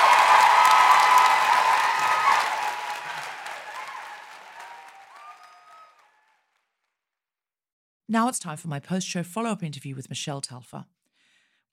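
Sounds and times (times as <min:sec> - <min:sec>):
audience applause: 0:00.0 - 0:06.7
speech: 0:08.1 - 0:11.0.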